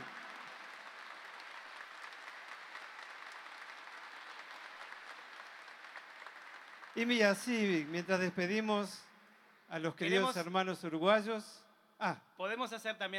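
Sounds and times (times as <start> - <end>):
audience applause: 0.0 - 9.0
speech: 7.0 - 9.1, 9.7 - 13.1.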